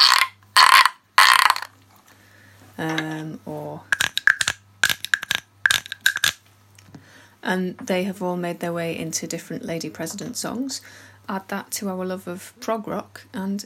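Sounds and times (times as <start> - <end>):
frog-shaped musical instruments being played: 0.0 - 1.7, 3.9 - 6.4
speech: 2.8 - 4.0, 7.4 - 13.6.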